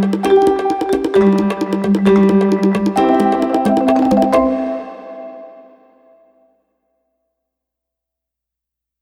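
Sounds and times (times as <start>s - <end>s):
bongo drummers playing: 0.0s - 5.0s.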